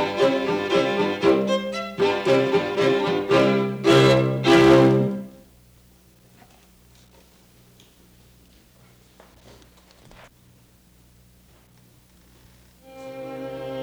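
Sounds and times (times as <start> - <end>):
string quartet in C major: 0.0 - 5.4, 12.8 - 13.8.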